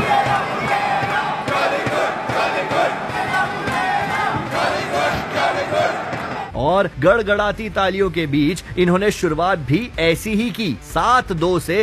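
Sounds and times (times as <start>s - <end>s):
stadium crowd chanting: 0.0s - 6.5s
speech: 6.8s - 11.8s.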